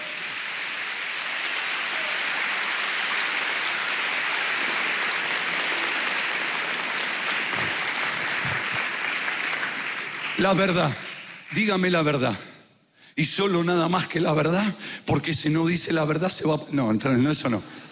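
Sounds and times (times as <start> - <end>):
audience applauding: 0.0 - 12.1
speech: 10.4 - 12.5, 13.2 - 17.8.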